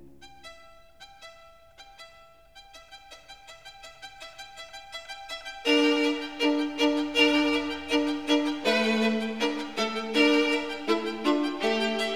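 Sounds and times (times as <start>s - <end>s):
string quartet playing allegro: 2.9s - 12.1s.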